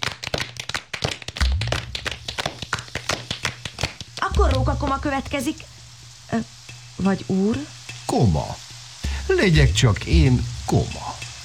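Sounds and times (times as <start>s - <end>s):
applause: 0.0s - 5.0s
speech: 4.4s - 8.6s, 9.3s - 11.1s.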